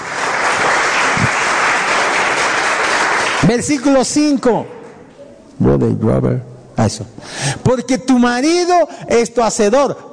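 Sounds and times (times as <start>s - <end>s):
audience applause: 0.0s - 3.7s
speech: 3.5s - 4.8s, 5.6s - 10.1s.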